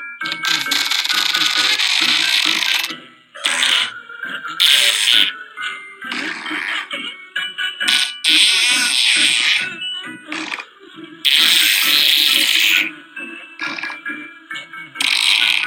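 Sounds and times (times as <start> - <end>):
fart sounds set to music: 0.2 - 4.0, 4.6 - 5.4, 6.1 - 7.0, 7.8 - 10.7, 11.3 - 12.9, 13.6 - 14.0, 15.0 - 15.6.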